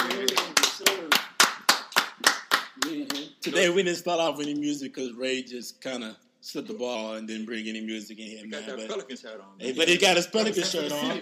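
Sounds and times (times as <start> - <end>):
round of applause: 0.0 - 3.6
speech: 3.4 - 11.2.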